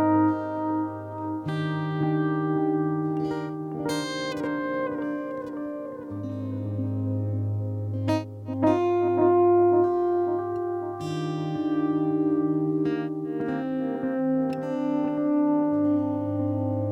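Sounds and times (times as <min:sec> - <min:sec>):
improvised electric guitar with volume pedal: 0:00.0 - 0:16.9.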